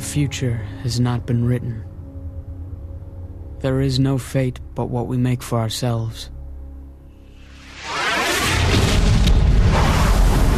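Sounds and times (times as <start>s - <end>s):
speech: 0.2s - 1.9s, 3.6s - 6.4s
atomic bomb exploding over a city at night: 7.8s - 10.5s.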